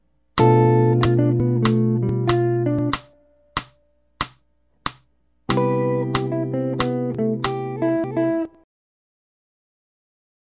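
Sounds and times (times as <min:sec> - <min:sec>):
jazz music: 0:00.4 - 0:03.7, 0:05.5 - 0:08.5.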